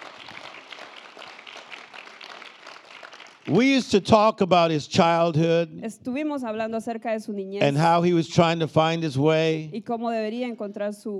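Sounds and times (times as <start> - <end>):
crowd applauding: 0.0 - 4.2
speech: 3.4 - 11.1.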